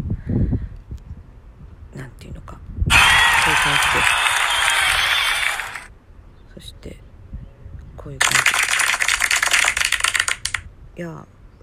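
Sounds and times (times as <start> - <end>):
hand clapping: 2.9 - 5.9, 8.2 - 10.6
speech: 11.0 - 11.4.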